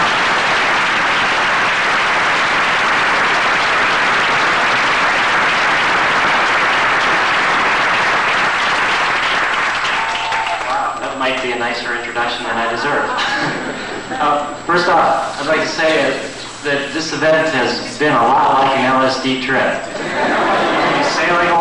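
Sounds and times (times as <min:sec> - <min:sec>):
audience applause: 0:00.0 - 0:11.6, 0:20.0 - 0:21.5
speech: 0:11.7 - 0:13.5, 0:14.2 - 0:21.5
laughter: 0:12.9 - 0:14.6, 0:19.9 - 0:21.5.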